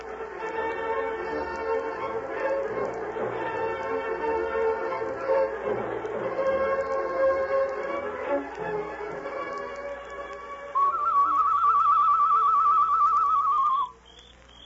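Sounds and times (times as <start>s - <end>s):
music: 0.0s - 13.9s
warbling bird call whistle: 10.7s - 14.6s.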